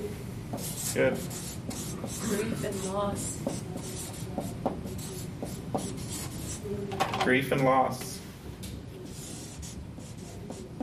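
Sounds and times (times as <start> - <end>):
pen scratching while writing words down: 0.6 - 6.6, 9.1 - 10.8
speech: 1.0 - 4.6, 6.7 - 8.1.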